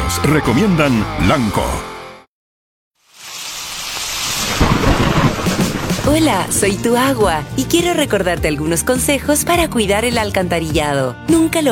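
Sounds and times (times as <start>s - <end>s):
speech: 0.2s - 2.0s, 6.1s - 11.7s
heavy rain: 3.1s - 7.6s
thunder: 4.2s - 7.6s.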